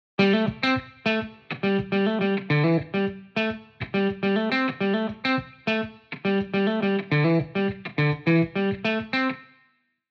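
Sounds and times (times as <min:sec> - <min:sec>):
guitar pattern: 0:00.2 - 0:09.7.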